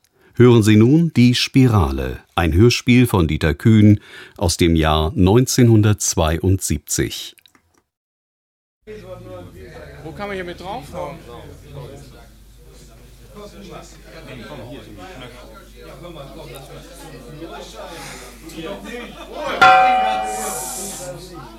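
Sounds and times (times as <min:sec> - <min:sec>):
speech: 0:00.4 - 0:07.4, 0:08.9 - 0:12.2, 0:13.4 - 0:21.5
gong strike marking the hour: 0:19.6 - 0:21.1.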